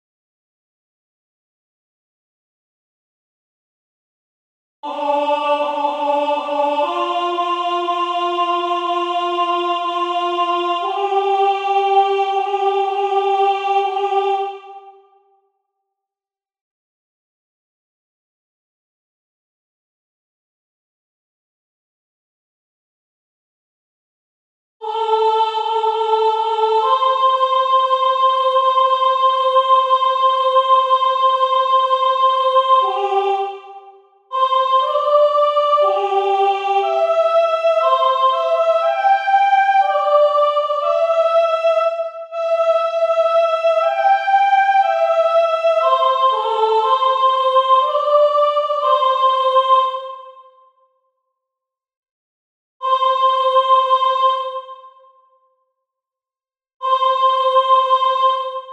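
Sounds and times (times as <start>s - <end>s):
soprano singing a solemn mass: 4.8s - 15.1s, 24.8s - 50.5s, 52.8s - 54.9s, 56.8s - 58.7s.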